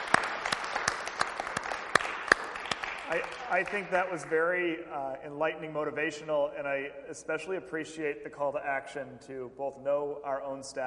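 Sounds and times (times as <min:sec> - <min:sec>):
audience applause: 0:00.0 - 0:04.3
speech: 0:03.1 - 0:10.8.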